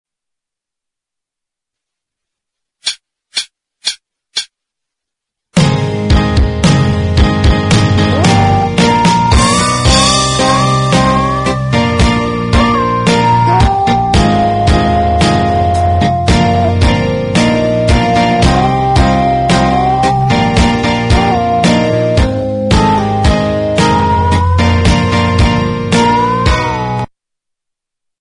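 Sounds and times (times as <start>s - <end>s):
backing music intro: 5.6s - 27.1s.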